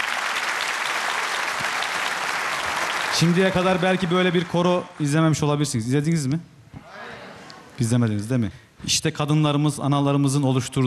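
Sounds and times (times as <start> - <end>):
audience applause for a women's choir: 0.0 - 5.1
speech: 3.2 - 6.6, 7.8 - 10.8.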